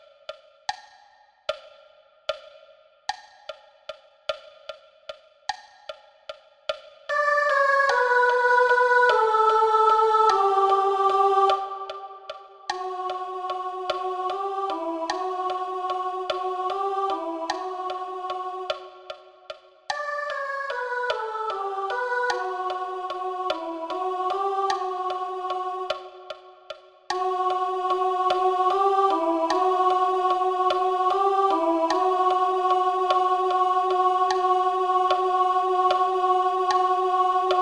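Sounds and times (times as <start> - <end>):
soprano singing: 7.1 - 19.1, 19.9 - 26.4, 27.1 - 37.6.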